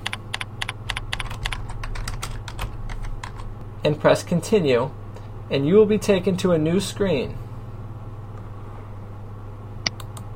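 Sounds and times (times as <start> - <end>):
computer keyboard typing a page title: 0.0 - 3.5
low steady hum: 0.0 - 10.3
speech: 3.8 - 7.4.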